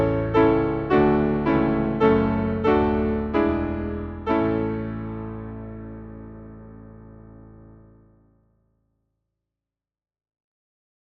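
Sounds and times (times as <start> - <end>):
hymn on piano: 0.0 - 8.1.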